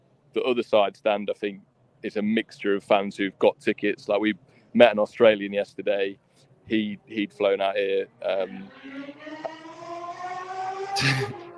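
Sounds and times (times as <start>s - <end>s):
speech: 0.4s - 9.5s, 11.0s - 11.4s
sports car engine passing: 8.2s - 11.5s.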